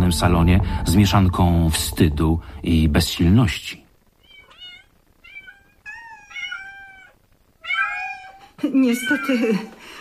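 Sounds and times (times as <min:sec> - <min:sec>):
speech: 0:00.1 - 0:03.8, 0:08.8 - 0:09.8
cat yowling: 0:04.2 - 0:09.4
cats meowing: 0:04.2 - 0:09.9.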